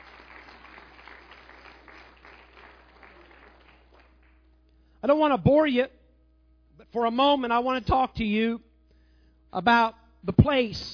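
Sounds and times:
audience clapping: 0.0 - 4.6
speech: 5.0 - 6.0, 6.9 - 8.7, 9.5 - 10.9.

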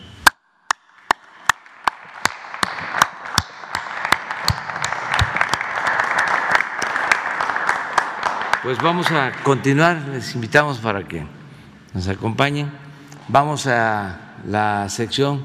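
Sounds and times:
audience applause: 1.1 - 9.8
speech: 8.6 - 15.4.

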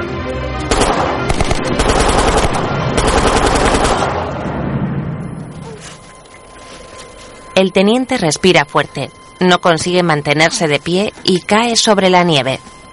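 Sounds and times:
rapid gunfire volleys: 0.7 - 4.4
low rumble: 0.8 - 7.6
speech: 7.6 - 12.8.

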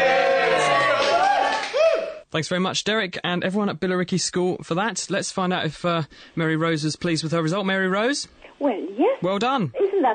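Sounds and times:
school children cheering: 0.0 - 2.2
speech: 2.3 - 10.1.

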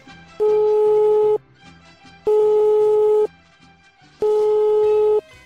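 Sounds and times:
telephone ringing tone of an outgoing call: 0.4 - 1.4, 2.3 - 3.3, 4.2 - 5.2.

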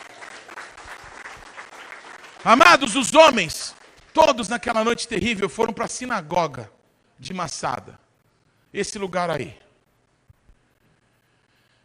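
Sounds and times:
audience applauding: 0.0 - 4.5
speech: 2.4 - 8.0, 8.7 - 9.6.

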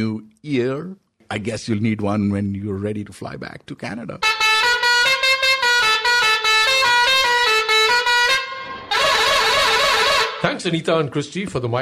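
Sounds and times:
speech: 0.0 - 4.5, 10.4 - 11.8
car horn honking: 4.2 - 10.6.

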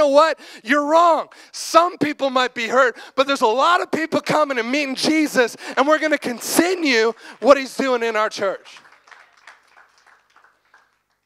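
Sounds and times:
speech: 0.0 - 8.8
half-hearted audience clapping: 5.1 - 11.2.

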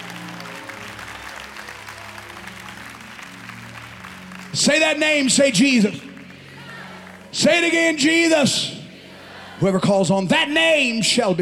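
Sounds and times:
audience clapping: 0.0 - 8.1
speech: 4.5 - 6.0, 7.3 - 8.8, 9.6 - 11.4.

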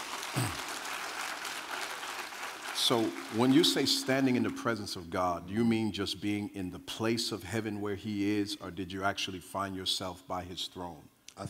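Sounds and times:
clapping: 0.0 - 3.9
speech: 2.8 - 11.4.

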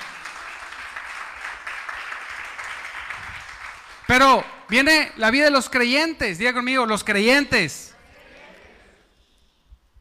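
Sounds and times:
crowd clapping: 0.0 - 4.4
speech: 4.1 - 7.9.

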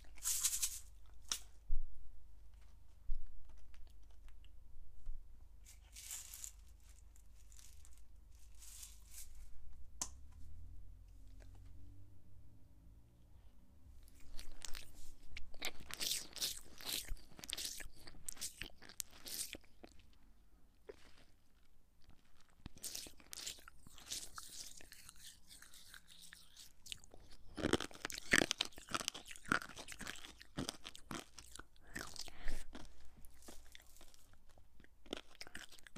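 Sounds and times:
eating chocolate lollies, sweets and sprinkles: 0.0 - 1.6, 5.6 - 9.6, 14.0 - 35.9
low steady hum: 9.4 - 14.2.

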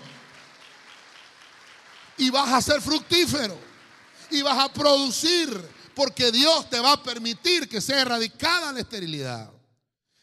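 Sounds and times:
applause: 0.0 - 7.3
speech: 2.2 - 3.7, 4.3 - 9.6.

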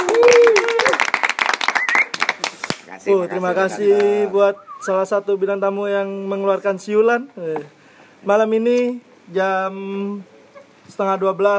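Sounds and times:
hand clapping applause: 0.0 - 2.9
speech: 3.0 - 10.3, 10.9 - 11.5.

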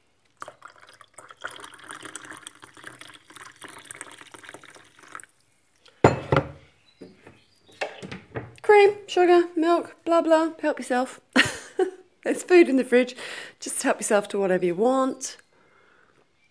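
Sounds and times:
pouring coffee into cups: 0.3 - 5.4
ceramic cups and dishes clattering: 6.0 - 6.6
speech: 8.8 - 11.2, 12.3 - 15.4.

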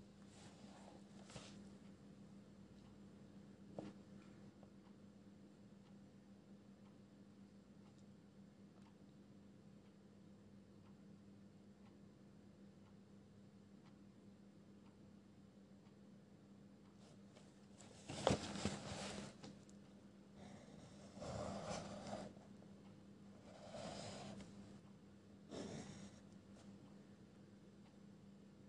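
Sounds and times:
steady low hum: 0.0 - 28.6
page handling rustling: 17.8 - 19.6
pencil scratching: 20.4 - 22.4, 23.5 - 24.5.

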